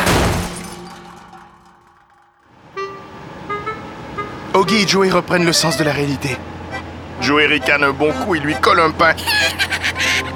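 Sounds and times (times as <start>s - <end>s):
locomotive smashing through a hangar door: 0.0s - 2.4s
speech: 4.6s - 6.6s, 7.2s - 9.8s
laughter: 7.2s - 10.3s.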